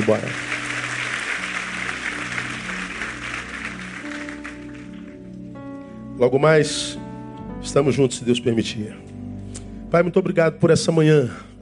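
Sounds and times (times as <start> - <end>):
speech: 0.0 - 0.6, 6.2 - 7.0, 7.6 - 9.1, 9.9 - 11.5
audience applause: 0.0 - 5.2.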